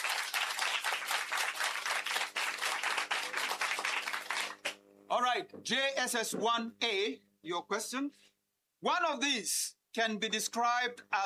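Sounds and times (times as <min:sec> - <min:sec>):
audience applause: 0:00.0 - 0:04.8
speech: 0:05.2 - 0:11.2.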